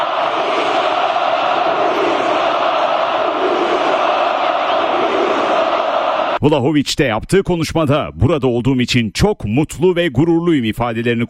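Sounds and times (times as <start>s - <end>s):
20,000 black-and-white football supporters cheering and chanting in Tüpraş Stadium: 0.0s - 6.5s
speech: 6.4s - 11.2s.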